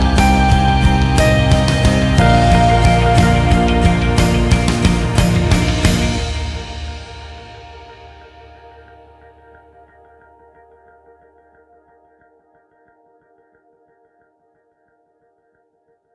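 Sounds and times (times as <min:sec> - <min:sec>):
pop television score music: 0:00.0 - 0:12.2.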